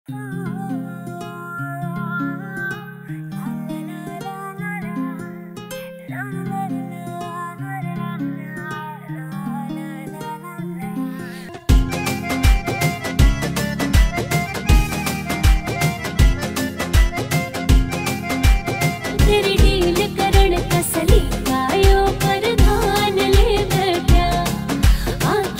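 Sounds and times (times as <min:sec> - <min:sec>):
new Haryanvi song: 0:11.4 - 0:25.5.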